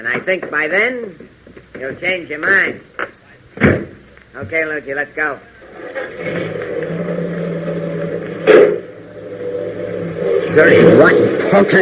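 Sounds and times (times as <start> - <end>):
speech: 0.0 - 6.8, 10.6 - 11.8
car driving away: 5.8 - 11.8.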